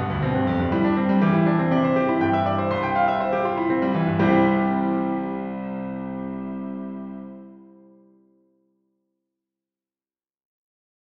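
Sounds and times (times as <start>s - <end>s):
piano prelude in C: 0.0s - 8.5s.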